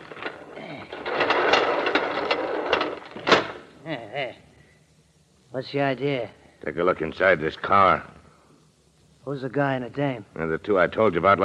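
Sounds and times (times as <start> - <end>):
heavy garage doors pulled shut: 0.0 - 3.6
speech: 5.5 - 8.1, 9.2 - 11.4.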